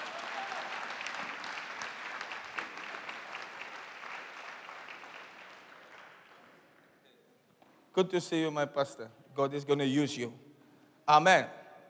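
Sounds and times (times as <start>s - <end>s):
crowd applauding: 0.0s - 6.9s
speech: 8.0s - 10.4s, 11.1s - 11.6s.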